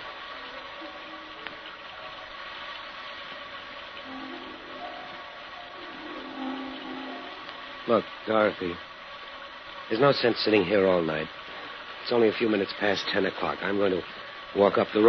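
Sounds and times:
rain falling: 0.0s - 15.0s
speech: 7.9s - 8.9s, 9.9s - 11.4s, 12.1s - 15.0s.

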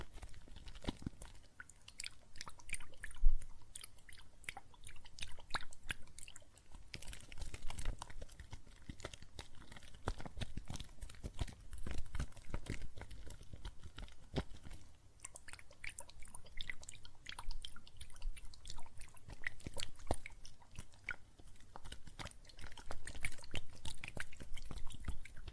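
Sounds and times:
soap foam fizzing and crackling with water: 0.0s - 3.4s, 4.6s - 25.5s.

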